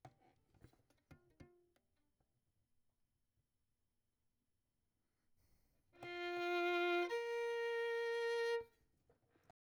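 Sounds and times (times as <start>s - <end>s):
violin: 6.0s - 8.8s.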